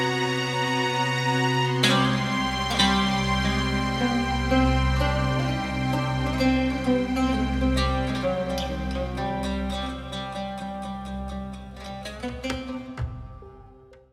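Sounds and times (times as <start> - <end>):
oud solo: 0.0 - 13.7.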